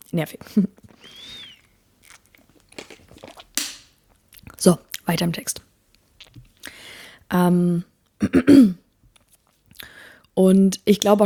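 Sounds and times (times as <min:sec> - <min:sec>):
speech: 0:00.1 - 0:01.2, 0:04.6 - 0:05.7, 0:07.3 - 0:08.8, 0:10.4 - 0:11.2
speaker sipping a drink: 0:00.8 - 0:04.6.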